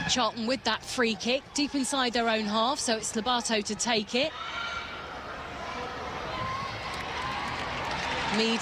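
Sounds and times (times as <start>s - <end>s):
speech: 0.1s - 4.7s, 8.3s - 8.6s
stadium crowd applause: 6.3s - 8.6s.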